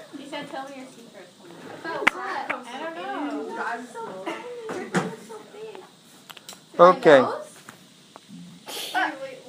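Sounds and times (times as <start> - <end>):
speech: 0.5 - 3.1, 3.6 - 4.4, 6.8 - 7.4
nose blowing: 8.3 - 9.0.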